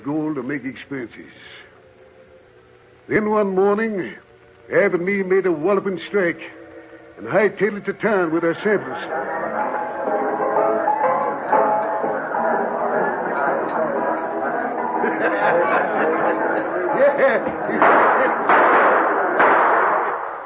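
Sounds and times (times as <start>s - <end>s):
speech: 0.0s - 1.7s, 3.1s - 6.6s, 7.2s - 10.2s
lively chatter and raised voices in a mining town: 0.0s - 19.5s
laughter: 12.1s - 18.5s
gunshots in a mining town: 17.7s - 20.4s.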